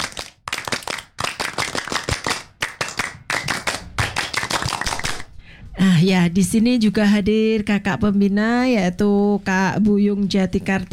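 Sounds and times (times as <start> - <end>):
scout-style rhythmic hand clapping by a group: 0.0 - 5.4
speech: 6.0 - 10.9.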